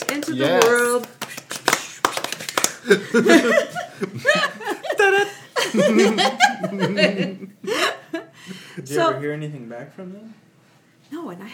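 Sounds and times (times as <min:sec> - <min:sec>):
hands clapping: 0:00.0 - 0:03.4
speech: 0:00.3 - 0:01.1, 0:02.8 - 0:07.9, 0:08.5 - 0:10.4, 0:11.1 - 0:11.5
person laughing: 0:02.8 - 0:08.3.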